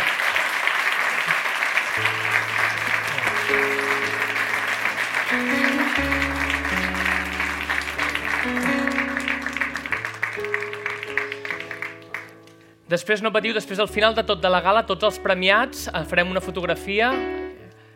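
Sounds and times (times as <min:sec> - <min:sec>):
audience applause: 0:00.0 - 0:12.5
speech: 0:12.9 - 0:17.4.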